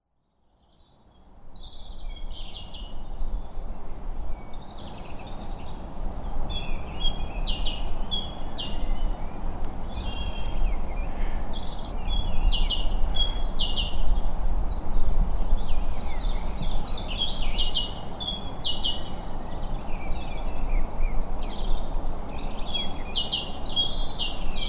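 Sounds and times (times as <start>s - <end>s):
birdsong: 0.2s - 24.6s.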